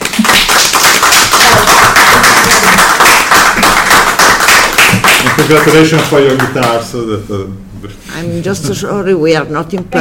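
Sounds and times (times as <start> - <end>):
applause: 0.0 - 6.8
speech: 5.5 - 10.0.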